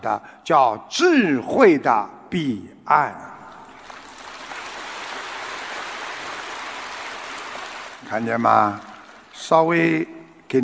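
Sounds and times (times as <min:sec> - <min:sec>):
speech: 0:00.0 - 0:03.3, 0:08.1 - 0:10.6
audience applause: 0:03.6 - 0:09.5.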